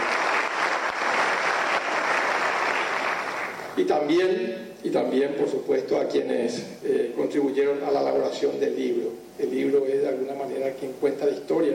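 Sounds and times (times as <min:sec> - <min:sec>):
audience applause: 0:00.0 - 0:03.8
speech: 0:03.8 - 0:11.7.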